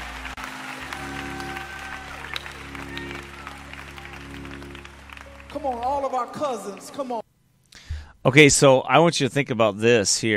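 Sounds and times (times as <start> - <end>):
audience clapping hands: 0.0 - 7.2
speech: 5.6 - 7.2, 8.2 - 10.3.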